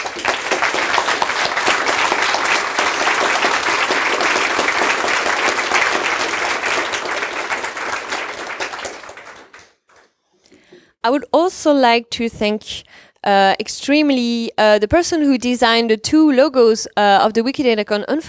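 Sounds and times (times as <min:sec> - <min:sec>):
audience applause: 0:00.0 - 0:10.1
speech: 0:11.0 - 0:18.2.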